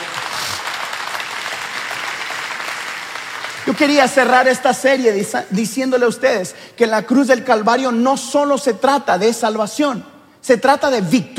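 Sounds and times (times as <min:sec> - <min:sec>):
audience applauding: 0:00.0 - 0:04.5
speech: 0:03.7 - 0:11.3.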